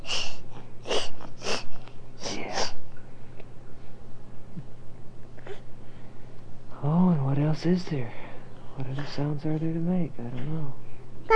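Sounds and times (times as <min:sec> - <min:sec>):
voice imitating a snake: 0:00.0 - 0:02.8
quiet hum: 0:00.0 - 0:11.3
speech: 0:07.6 - 0:08.2, 0:08.8 - 0:11.3.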